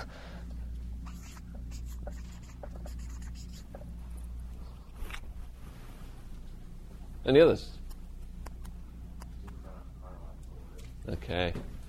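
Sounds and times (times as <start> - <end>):
low constant hum: 0.0 - 11.8
pen strokes handwriting on paper: 1.1 - 3.8
speech: 7.2 - 7.8, 11.1 - 11.8.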